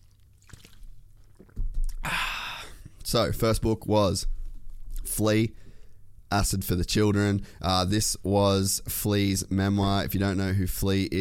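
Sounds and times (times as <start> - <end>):
person drinking water, sipping and swallowing: 0.0 - 3.0
breathy exhale: 2.0 - 2.9
speech: 3.1 - 4.4, 5.1 - 5.6, 6.3 - 11.1.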